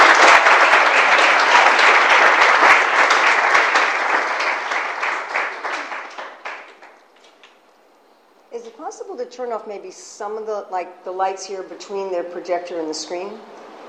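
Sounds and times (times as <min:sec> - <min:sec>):
audience applause: 0:00.0 - 0:07.6
speech: 0:09.4 - 0:13.6.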